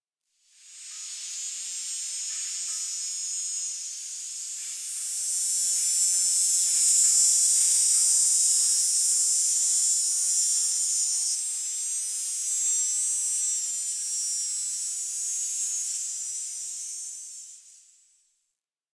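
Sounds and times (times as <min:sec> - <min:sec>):
tree cicada: 0:00.6 - 0:18.1.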